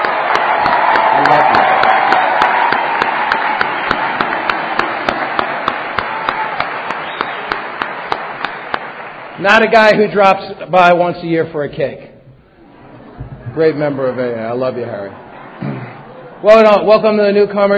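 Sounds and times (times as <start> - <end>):
audience round of applause: 0.0 - 10.0
speech: 1.2 - 2.2, 9.4 - 12.1, 13.6 - 15.2, 16.4 - 17.7.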